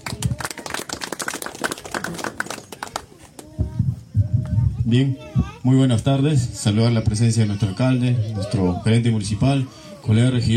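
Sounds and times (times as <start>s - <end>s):
crowd clapping: 0.0s - 3.6s
speech: 4.9s - 10.5s.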